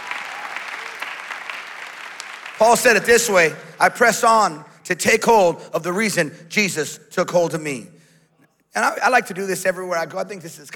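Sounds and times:
audience clapping: 0.0s - 4.0s
speech: 2.6s - 8.0s, 8.7s - 10.7s.

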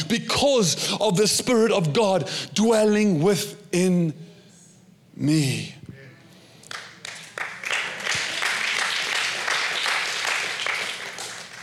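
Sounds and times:
speech: 0.1s - 4.2s, 5.2s - 5.8s
crowd applause: 6.7s - 11.6s.

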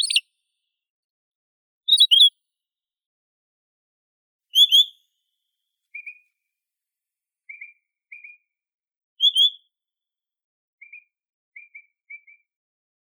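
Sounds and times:
pine grosbeak Pinicola enucleator whistles and warble: 0.0s - 0.2s, 1.9s - 2.3s, 4.6s - 4.9s, 9.2s - 9.6s.

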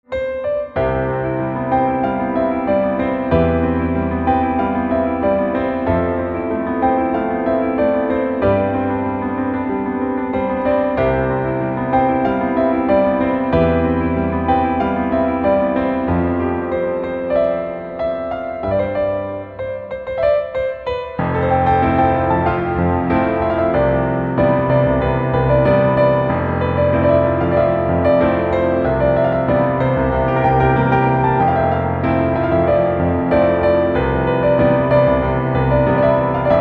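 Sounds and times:
piano: 0.0s - 36.6s.

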